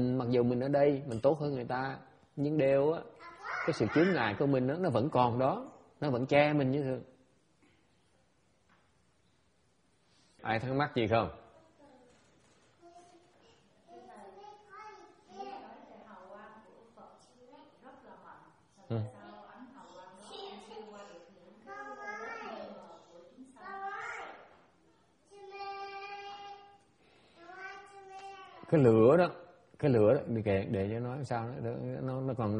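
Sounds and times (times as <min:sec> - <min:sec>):
speech: 0:00.0 - 0:07.1, 0:10.4 - 0:11.4, 0:18.9 - 0:19.2, 0:28.7 - 0:32.5
young children shouting in the room: 0:03.2 - 0:04.3.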